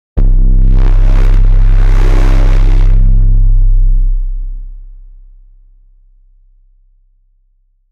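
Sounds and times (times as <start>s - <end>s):
drum and bass music: 0.2s - 4.4s.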